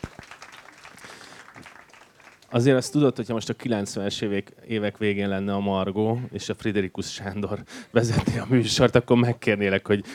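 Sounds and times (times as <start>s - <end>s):
audience applause: 0.0s - 3.1s
speech: 2.5s - 10.1s.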